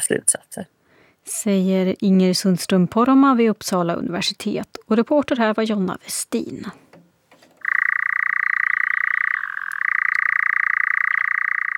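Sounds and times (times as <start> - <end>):
speech: 0.0 - 6.8
European nightjar churring call: 7.6 - 11.7.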